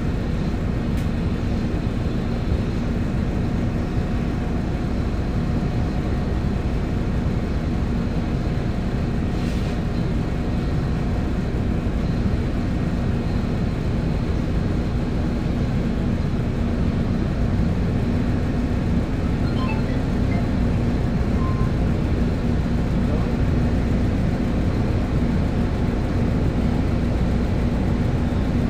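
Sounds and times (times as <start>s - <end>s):
22 bus engine rumble: 0.0s - 28.6s
road roar under the 22 bus: 0.0s - 28.6s
faint hum: 19.0s - 22.4s.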